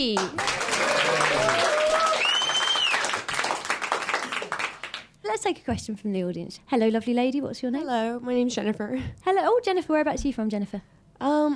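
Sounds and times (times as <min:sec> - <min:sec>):
speech: 0:00.0 - 0:00.6, 0:05.4 - 0:11.5
audience applause: 0:00.2 - 0:05.1.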